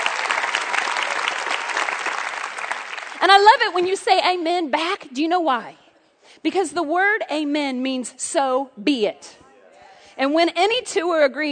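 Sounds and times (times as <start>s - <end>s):
congregation clapping during a church sermon: 0.0s - 3.3s
speech: 3.2s - 5.8s, 6.4s - 9.4s, 10.2s - 11.5s.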